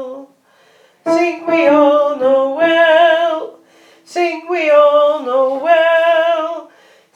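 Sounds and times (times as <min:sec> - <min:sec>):
women's choir singing: 0:01.1 - 0:06.4.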